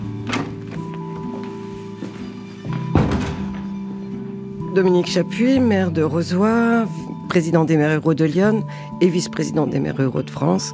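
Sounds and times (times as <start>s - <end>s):
door closing: 0.1s - 1.0s, 2.7s - 3.9s
speech: 4.8s - 10.7s.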